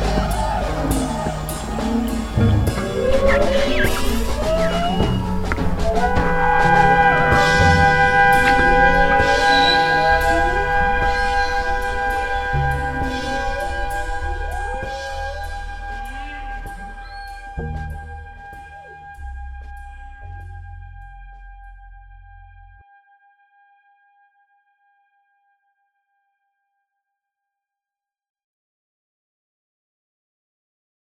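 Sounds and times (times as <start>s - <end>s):
jazz strings: 0.0s - 21.1s.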